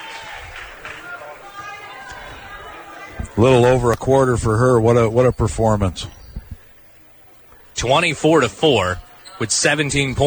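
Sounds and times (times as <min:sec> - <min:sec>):
round of applause for departing player: 0:00.0 - 0:03.5
speech: 0:03.4 - 0:06.2, 0:07.8 - 0:10.2.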